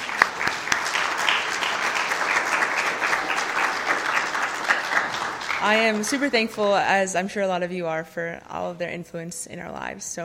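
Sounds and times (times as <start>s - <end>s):
audience applause: 0.0s - 6.7s
speech: 5.6s - 10.2s.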